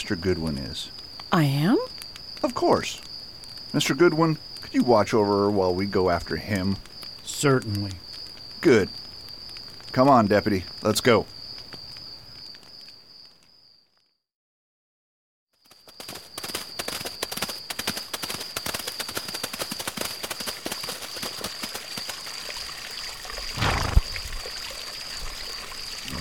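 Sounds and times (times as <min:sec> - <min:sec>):
speech: 0:00.0 - 0:03.1, 0:03.7 - 0:08.0, 0:08.6 - 0:09.0, 0:09.9 - 0:11.4
stream flowing: 0:20.9 - 0:26.2.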